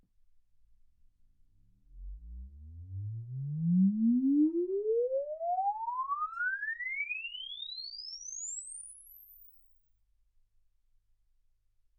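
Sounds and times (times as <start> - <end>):
exponential sine sweep from 10 Hz to 24 kHz: 2.0 - 9.7.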